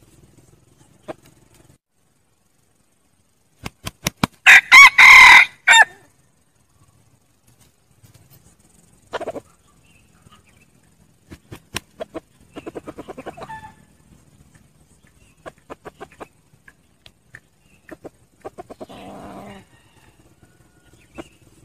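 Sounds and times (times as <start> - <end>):
red junglefowl crowing: 4.4 - 6.1, 18.8 - 21.3.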